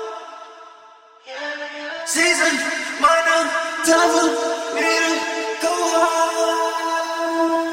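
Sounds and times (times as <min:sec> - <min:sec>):
pop rnb music: 0:02.2 - 0:07.6.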